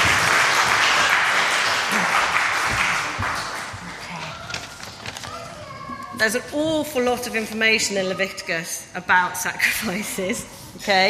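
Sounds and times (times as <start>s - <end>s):
audience applause: 0.0s - 4.2s
speech: 6.2s - 11.0s.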